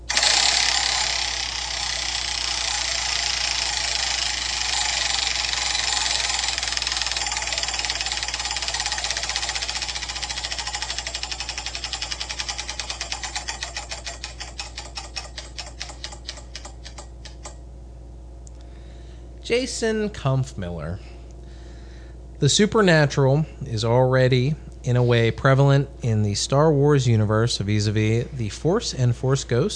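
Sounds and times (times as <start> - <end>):
spun prize wheel clicking: 0.0 - 17.6
speech: 19.5 - 21.1, 22.4 - 29.7.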